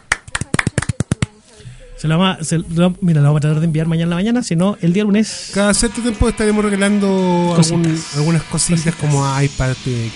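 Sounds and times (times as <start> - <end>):
hand clapping for a contest prize winner: 0.0 - 1.3, 6.6 - 9.2
speech: 2.0 - 10.1.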